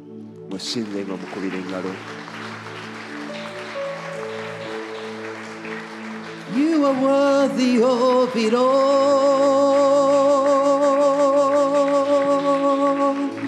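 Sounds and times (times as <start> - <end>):
speech: 0.5 - 2.6, 6.5 - 10.4
audience clapping as worship: 0.5 - 13.4.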